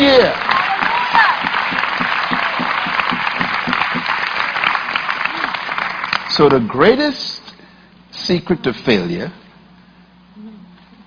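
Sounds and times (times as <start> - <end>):
audience clapping: 0.0 - 6.8
speech: 6.4 - 7.4, 8.3 - 9.4.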